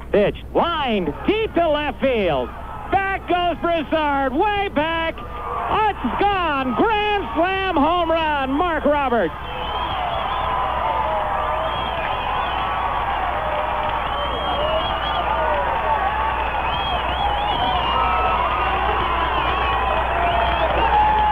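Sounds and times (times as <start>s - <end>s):
speech: 0.1s - 9.6s
baseball crowd cheering a grand slam home run: 1.0s - 21.3s
baseball crowd scattered clapping: 9.8s - 21.3s.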